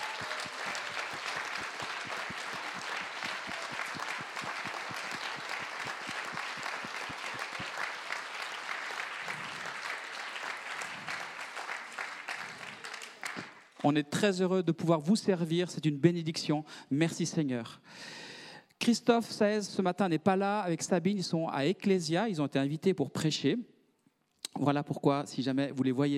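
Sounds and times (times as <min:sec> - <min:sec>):
audience applause: 0:00.0 - 0:13.8
speech: 0:13.8 - 0:18.2, 0:18.8 - 0:23.7, 0:24.6 - 0:26.1.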